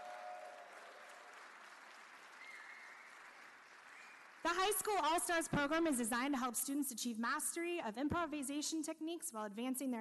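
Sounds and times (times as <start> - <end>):
audience applause: 0.0 - 4.5
speech: 4.4 - 9.9.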